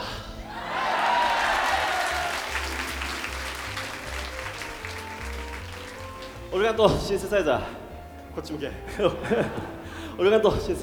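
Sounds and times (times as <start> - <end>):
audience applause: 0.5 - 6.6
speech: 6.6 - 7.8, 8.4 - 10.8
laughter: 8.8 - 9.8.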